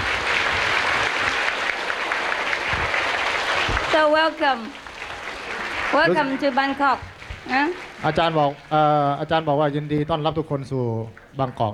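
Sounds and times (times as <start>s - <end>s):
audience applause at an event in Bangkok, Thailand: 0.0s - 9.2s
speech: 4.0s - 4.8s, 5.9s - 11.7s.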